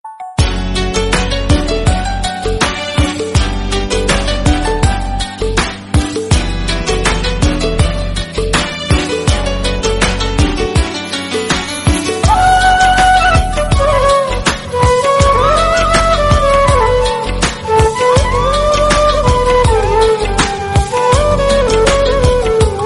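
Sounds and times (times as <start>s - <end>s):
background music ringtone: 0.0s - 21.7s.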